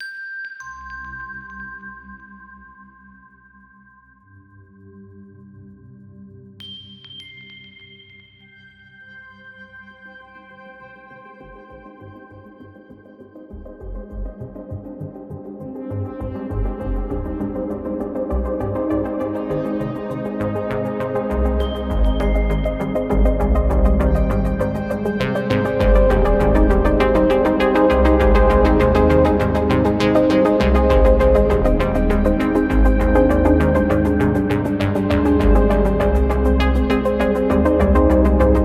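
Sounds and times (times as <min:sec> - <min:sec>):
pulsing night underscore: 0:13.5 - 0:38.6.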